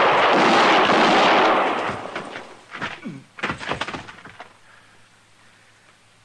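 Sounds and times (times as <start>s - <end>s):
heavy gunshot in a Western gunfight: 0.0s - 2.4s
sharp cracks and thuds: 1.7s - 4.6s.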